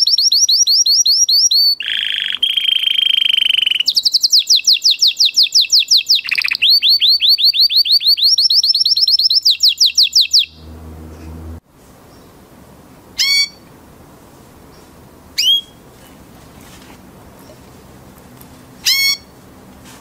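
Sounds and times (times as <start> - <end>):
canary singing: 0.0 - 12.3, 13.2 - 13.7, 18.8 - 19.4.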